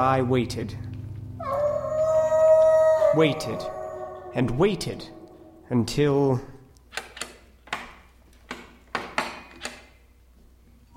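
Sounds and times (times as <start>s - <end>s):
speech: 0.0s - 0.9s, 3.1s - 3.8s, 4.4s - 6.5s
wolves howling: 1.3s - 5.8s.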